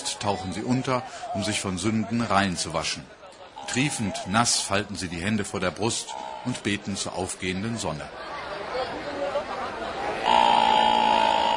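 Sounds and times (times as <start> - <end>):
crowd murmuring: 0.0 - 11.5
speech: 0.2 - 8.8
elephant trumpeting: 3.6 - 4.7, 6.0 - 6.8, 10.2 - 11.5.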